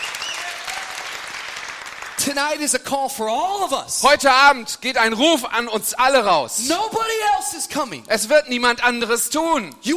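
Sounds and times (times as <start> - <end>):
audience applause: 0.0 - 2.4
speech: 2.2 - 9.9.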